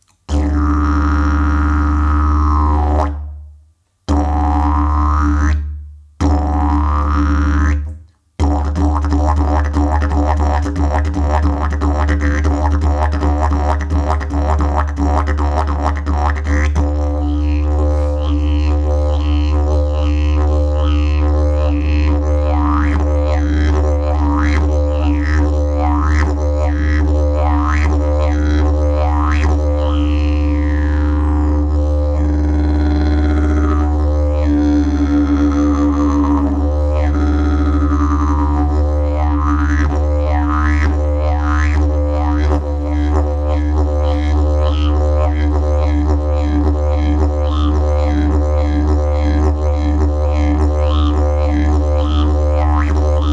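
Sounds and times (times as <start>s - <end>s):
maple concert didgeridoo: 0.3s - 3.3s, 4.1s - 53.3s.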